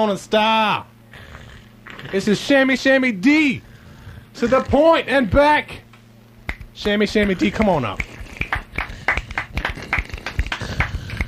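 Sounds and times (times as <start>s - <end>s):
speech: 0.0s - 0.9s, 2.0s - 3.7s, 4.4s - 5.8s, 6.8s - 8.1s
rapid uneven handclaps: 6.5s - 11.2s.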